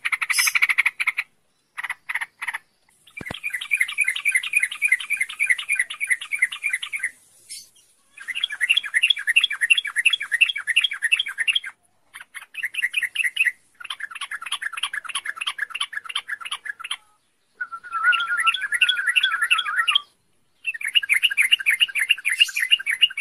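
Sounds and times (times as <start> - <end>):
songbird twittering: 0.0 - 23.2.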